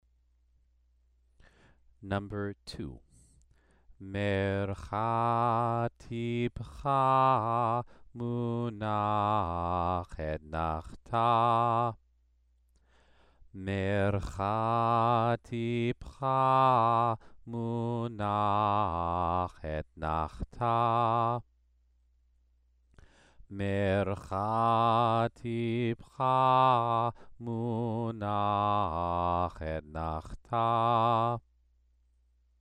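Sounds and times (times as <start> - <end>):
Torah trope cantillation exercise: 4.0 - 12.0, 13.6 - 21.4, 23.5 - 31.4.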